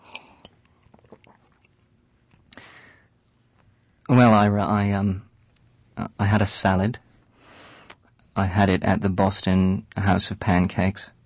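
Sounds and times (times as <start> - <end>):
sipping water: 0.0 - 1.8
speech: 4.3 - 5.3, 6.0 - 7.0, 8.4 - 11.2.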